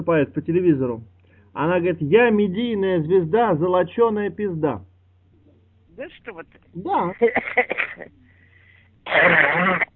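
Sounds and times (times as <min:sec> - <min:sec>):
speech: 0:00.0 - 0:04.9, 0:06.0 - 0:08.2, 0:09.1 - 0:09.9
faint low hum: 0:00.0 - 0:09.9
person coughing with a harsh wheezing cough: 0:07.2 - 0:08.1, 0:09.1 - 0:09.9.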